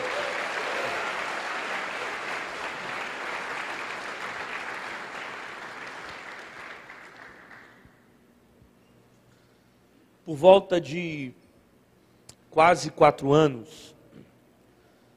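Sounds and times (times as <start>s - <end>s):
audience applause: 0.0s - 7.9s
speech: 10.3s - 11.4s, 12.6s - 13.9s.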